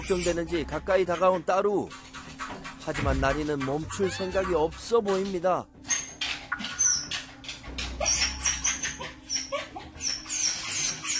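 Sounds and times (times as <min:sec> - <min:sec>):
speech: 0:00.1 - 0:02.1, 0:02.8 - 0:05.8
dog whining and yelping after separation from its owner: 0:05.8 - 0:11.1.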